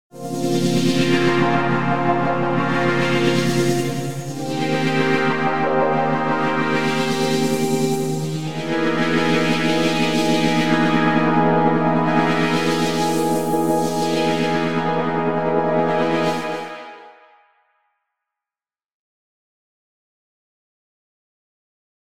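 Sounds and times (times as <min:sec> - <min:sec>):
synth pad: 0:00.2 - 0:17.1.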